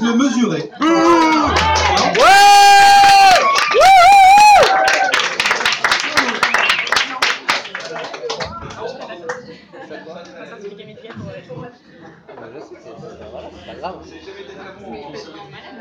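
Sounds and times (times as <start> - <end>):
audience whooping: 0.9 - 7.0
audience applause: 1.0 - 8.6.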